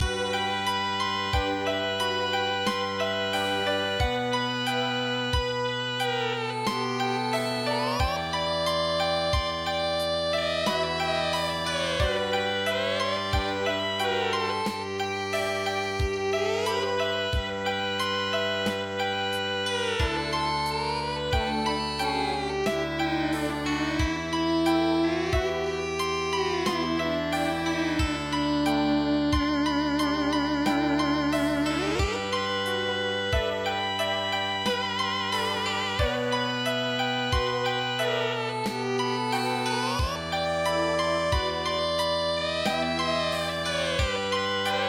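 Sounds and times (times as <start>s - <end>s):
Chinese erhu music: 0.0s - 44.8s.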